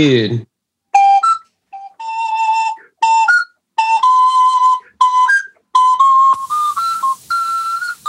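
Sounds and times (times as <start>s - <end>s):
Suzuki Andes ocarina keyboard playing a melody: 0.9s - 8.0s
breathy hiss: 6.4s - 8.0s.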